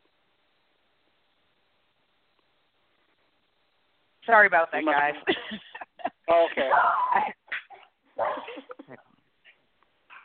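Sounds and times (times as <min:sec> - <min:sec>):
speech: 0:04.3 - 0:05.6, 0:06.3 - 0:07.4
dogs barking: 0:06.7 - 0:08.7.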